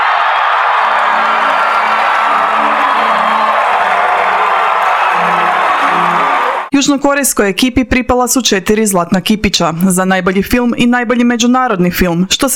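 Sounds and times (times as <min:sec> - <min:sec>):
audience cheering at the Oscars ceremony for Parasite: 0:00.0 - 0:06.7
speech: 0:06.8 - 0:12.5.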